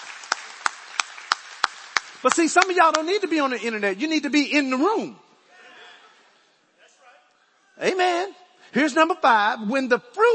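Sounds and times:
people clapping: 0.0 - 3.6
speech: 2.2 - 5.2, 7.8 - 10.3.

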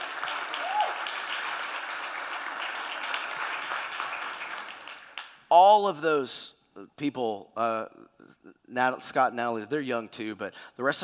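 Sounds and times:
crowd applauding: 0.0 - 5.4
cheer or whistle: 0.6 - 1.0
speech: 5.5 - 11.0.

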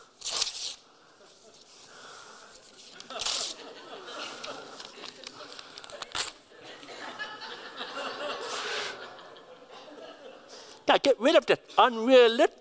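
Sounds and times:
picture paper being ripped up during a sermon: 0.2 - 0.8, 2.6 - 3.6, 5.6 - 6.4
soft chuckling and laughter: 1.1 - 10.7
speech: 10.9 - 12.5.

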